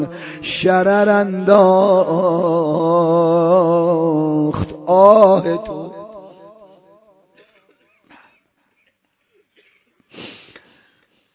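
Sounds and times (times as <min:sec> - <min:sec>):
speech: 0:00.0 - 0:05.8
person weeping during a religious mourning recitation: 0:10.1 - 0:10.8.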